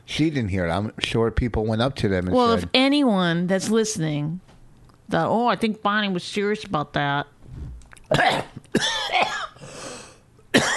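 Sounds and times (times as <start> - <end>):
speech: 0.1 - 4.5, 5.1 - 9.0
person coughing after choking on saliva: 8.1 - 9.7, 10.5 - 10.7.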